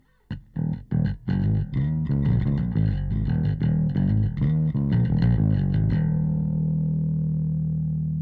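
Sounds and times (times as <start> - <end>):
bass: 0.0 - 8.2.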